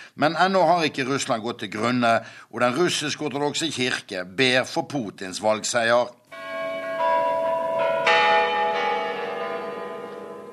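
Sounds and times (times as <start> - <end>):
speech: 0.2 - 6.4
Kremlin Spasskaya tower clock bell striking: 6.3 - 10.5.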